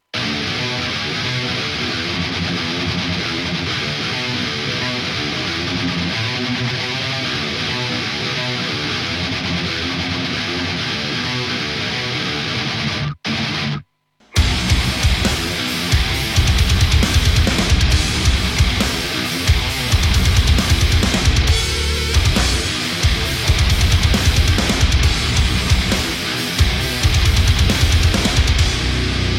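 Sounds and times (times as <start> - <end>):
drum mix: 0.0 - 29.3.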